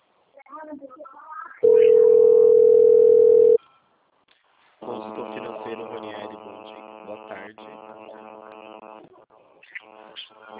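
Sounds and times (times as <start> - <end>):
telephone dial tone: 1.6 - 3.6.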